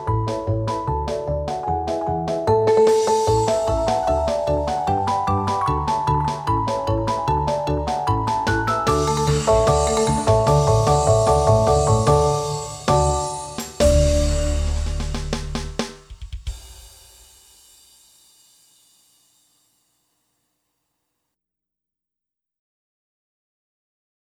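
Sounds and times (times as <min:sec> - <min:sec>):
music box orchestra: 0:00.0 - 0:14.8.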